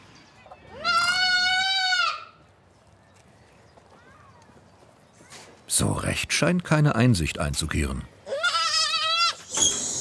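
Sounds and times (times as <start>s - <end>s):
young goat kid bleating: 0.7s - 2.3s, 8.2s - 9.5s
speech: 5.8s - 8.2s.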